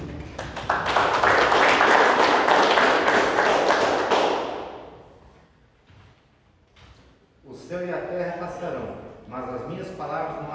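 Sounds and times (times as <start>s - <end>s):
crowd applause in council session: 0.0s - 4.7s.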